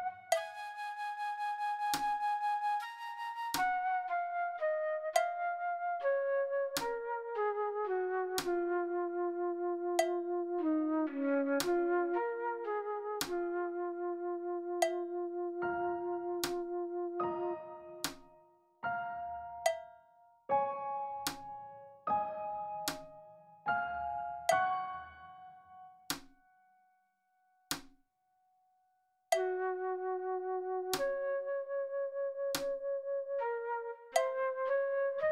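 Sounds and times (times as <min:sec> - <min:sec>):
slow flute backing track: 0:00.0 - 0:18.2, 0:29.4 - 0:35.3
slow piano backing track: 0:00.0 - 0:26.8, 0:29.3 - 0:35.3.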